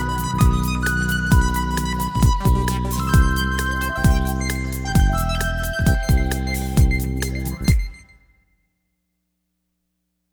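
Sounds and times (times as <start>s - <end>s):
instrumental music: 0.0s - 8.2s.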